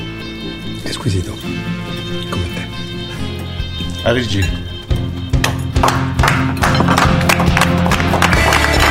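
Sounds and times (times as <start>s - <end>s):
speech: 0.9s - 2.6s, 4.0s - 4.7s
small group of family members clapping: 5.3s - 8.8s.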